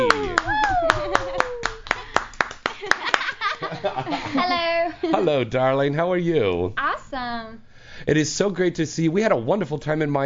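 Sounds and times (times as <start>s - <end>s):
person cheering: 0.0s - 2.0s
applause welcoming a guest onto a show: 0.0s - 3.5s
laughter: 2.8s - 5.4s
speech: 4.3s - 10.2s.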